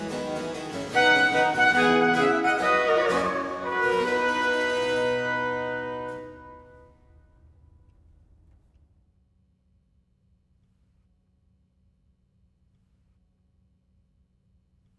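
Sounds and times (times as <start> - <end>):
baroque piece for trumpet, strings and basso continuo in C major: 0.3 - 7.1.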